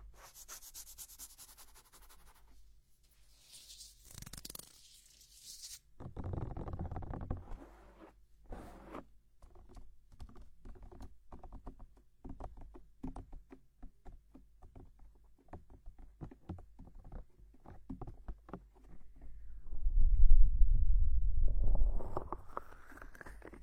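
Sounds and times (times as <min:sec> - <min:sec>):
rubbing and scratching at the scalp during hair washing: 0:00.1 - 0:02.5
deep rumbling swell: 0:19.4 - 0:22.5.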